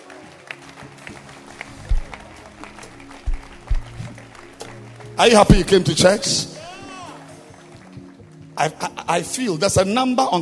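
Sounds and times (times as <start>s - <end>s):
audience clapping hands: 0.0s - 9.1s
heavier low thumps: 1.6s - 6.1s
speech: 5.2s - 6.5s, 8.6s - 10.4s.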